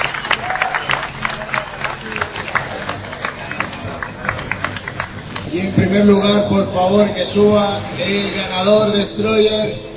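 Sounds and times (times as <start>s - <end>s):
audience applauding at an award ceremony: 0.0s - 5.7s
speech: 5.5s - 9.9s.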